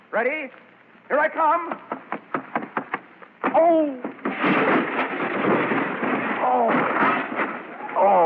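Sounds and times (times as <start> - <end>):
speech: 0.2 - 2.0, 3.6 - 5.6
sharp knocks: 1.7 - 7.6
table crashing: 2.0 - 8.2.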